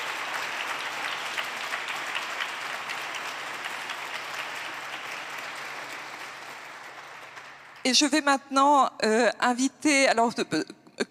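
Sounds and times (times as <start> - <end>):
audience applause: 0.0 - 7.9
speech: 7.8 - 10.8.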